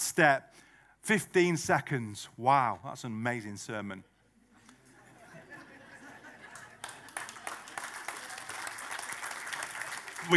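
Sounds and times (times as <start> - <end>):
speech: 0.2 - 4.1
laughter: 4.0 - 8.3
audience applause: 6.4 - 10.3.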